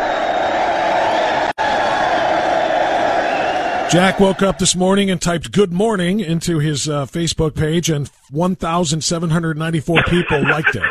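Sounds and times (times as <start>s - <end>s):
crowd cheering: 0.0s - 5.1s
speech: 3.9s - 10.8s
laughter: 9.9s - 10.8s.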